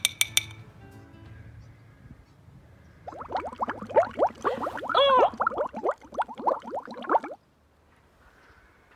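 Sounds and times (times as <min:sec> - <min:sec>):
glass clinks: 0:00.0 - 0:00.6
baking soda paste glugging into a bottle: 0:03.1 - 0:07.4.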